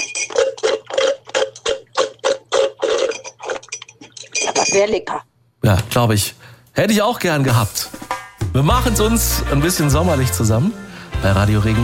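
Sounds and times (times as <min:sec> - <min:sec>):
slurping the dregs of an iced coffee through a straw: 0:00.0 - 0:04.4
speech: 0:04.7 - 0:07.9, 0:08.6 - 0:11.8.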